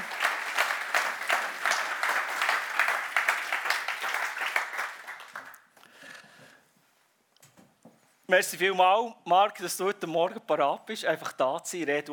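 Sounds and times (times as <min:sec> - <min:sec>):
audience applause: 0:00.0 - 0:05.7
speech: 0:08.3 - 0:12.1.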